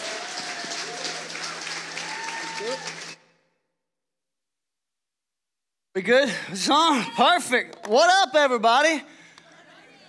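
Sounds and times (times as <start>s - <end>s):
audience applause at a morning church service: 0.0s - 3.3s
speech: 2.6s - 3.0s, 6.0s - 9.2s.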